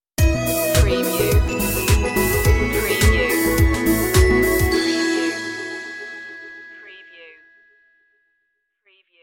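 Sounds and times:
music stinger: 0.2 - 6.7.

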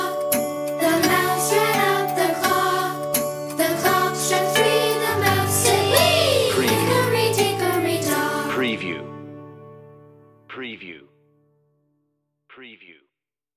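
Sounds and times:
children group singing a nursery rhyme: 0.8 - 8.8.

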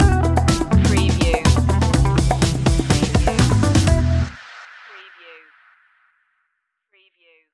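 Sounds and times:
funk stinger music: 0.0 - 4.4.

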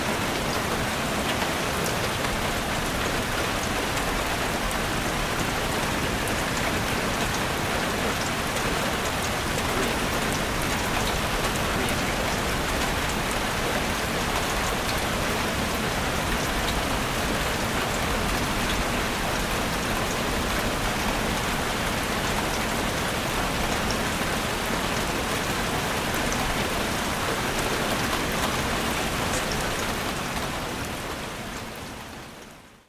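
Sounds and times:
heavy rain pouring: 0.0 - 32.8.

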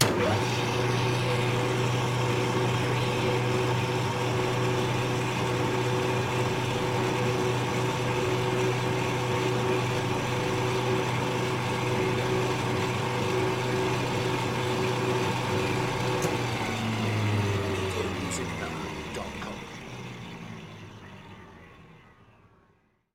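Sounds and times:
drill press: 0.0 - 21.8.

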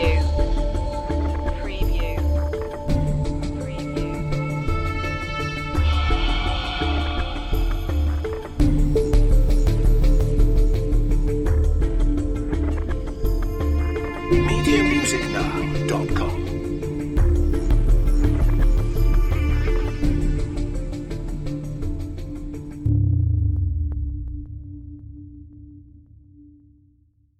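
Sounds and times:
dramatic music cue: 0.2 - 24.9.

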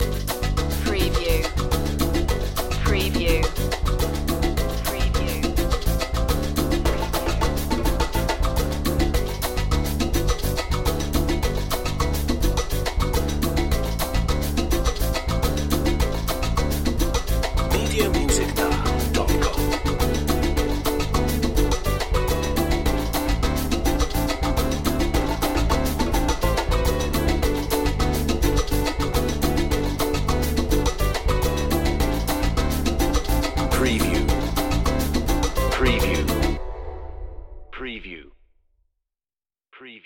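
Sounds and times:
samba festival groove: 0.0 - 36.6.

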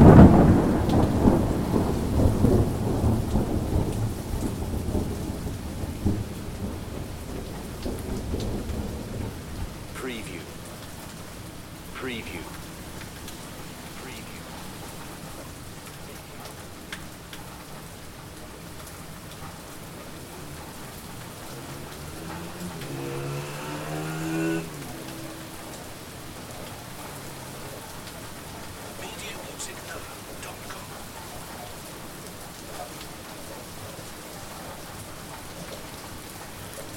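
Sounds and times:
thunder in Manchester: 0.0 - 9.6
heavy rain in Manchester: 0.0 - 36.9.

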